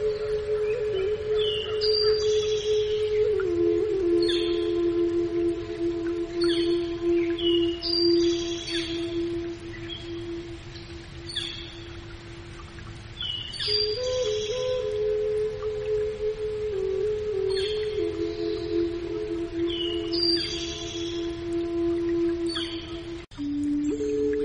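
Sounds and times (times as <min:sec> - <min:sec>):
Indian flute playing: 0:00.0 - 0:12.8, 0:13.5 - 0:24.4
forest ambience: 0:00.0 - 0:24.4.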